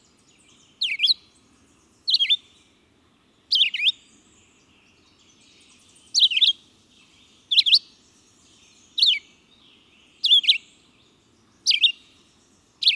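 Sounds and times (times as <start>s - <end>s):
red-eyed vireo calling: 0.7s - 2.7s, 3.5s - 4.3s, 5.7s - 8.0s, 8.9s - 12.9s.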